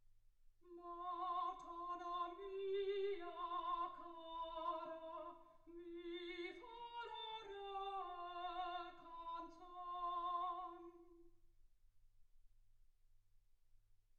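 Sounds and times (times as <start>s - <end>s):
soprano singing: 0.7s - 11.3s.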